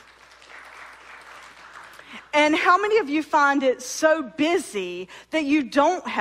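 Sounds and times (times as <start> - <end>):
audience clapping: 0.0 - 2.4
speech: 2.4 - 6.1.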